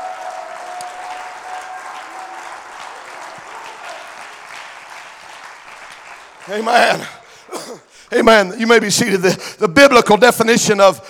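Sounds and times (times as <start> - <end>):
audience clapping hands: 0.0 - 7.5
speech: 6.5 - 11.0.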